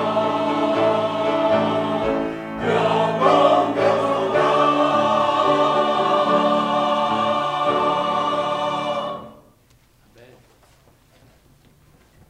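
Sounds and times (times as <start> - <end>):
choir singing: 0.0 - 9.6.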